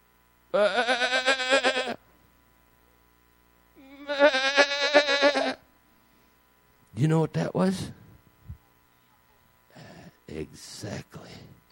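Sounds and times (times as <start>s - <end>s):
speech: 0.5s - 1.2s, 7.0s - 8.0s, 10.4s - 11.6s
sheep bleating: 0.5s - 2.0s, 3.8s - 5.6s.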